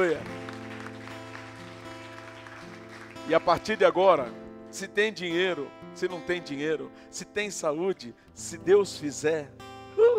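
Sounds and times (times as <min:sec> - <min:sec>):
speech: 0:00.0 - 0:00.4, 0:03.3 - 0:10.1
audience applauding: 0:00.0 - 0:04.0.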